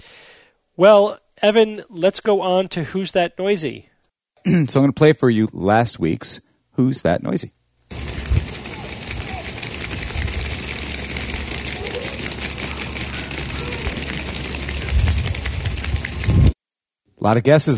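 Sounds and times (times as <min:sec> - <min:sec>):
speech: 0:00.8 - 0:07.6, 0:17.2 - 0:17.7
flock of geese running on paved street: 0:07.9 - 0:16.6.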